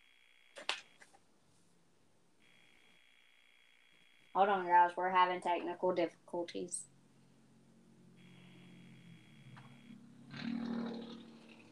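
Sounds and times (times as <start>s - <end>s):
speech: 4.4s - 6.9s
motorcycle zooming past the house: 8.0s - 11.7s.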